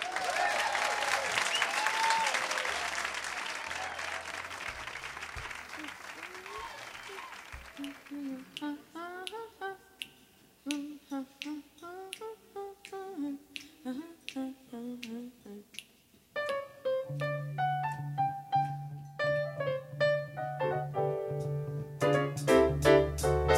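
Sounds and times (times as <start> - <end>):
audience applause welcoming a singer at the Blues Alley club: 0.0 - 8.6
person singing: 5.8 - 15.8
music: 16.4 - 23.5.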